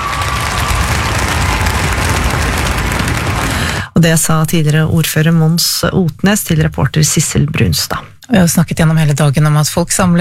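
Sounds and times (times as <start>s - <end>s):
crowd applauding at an outdoor statue unveiling: 0.0s - 3.9s
speech: 4.0s - 10.1s.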